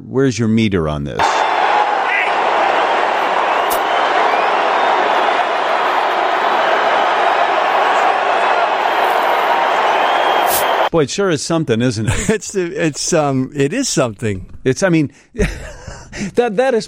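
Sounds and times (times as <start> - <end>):
speech: 0.1 - 1.4, 10.9 - 16.8
stadium crowd cheering and booing: 1.2 - 10.9.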